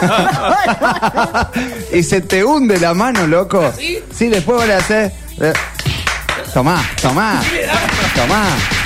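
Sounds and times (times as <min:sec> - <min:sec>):
laughter: 0:00.0 - 0:02.0
speech: 0:00.0 - 0:05.8, 0:06.5 - 0:08.8
slap: 0:04.3 - 0:08.8.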